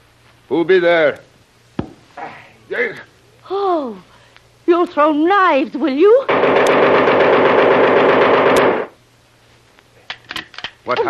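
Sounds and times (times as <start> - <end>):
speech: 0.5 - 1.3, 2.7 - 4.1, 4.7 - 7.5, 10.9 - 11.0
automatic gunfire burst in a radio drama: 6.3 - 9.0.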